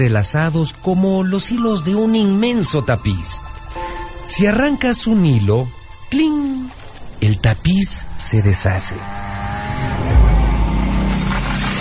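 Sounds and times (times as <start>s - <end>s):
speech: 0.0s - 3.5s, 4.2s - 9.9s
chainsaw cutting trees: 9.2s - 11.8s.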